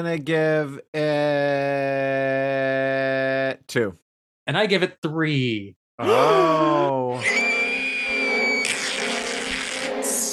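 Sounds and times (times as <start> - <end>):
speech: 0.0 - 7.5
scream sound effect: 6.0 - 10.3.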